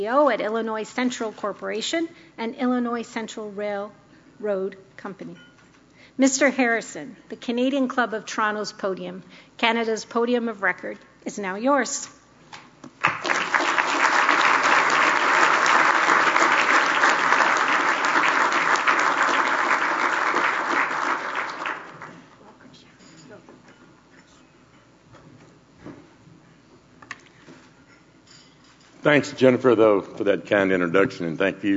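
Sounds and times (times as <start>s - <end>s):
speech: 0.0s - 5.5s, 6.2s - 12.2s, 29.1s - 31.7s
audience applause welcoming a speaker to the Canadian Club of Toronto podium: 13.0s - 22.3s.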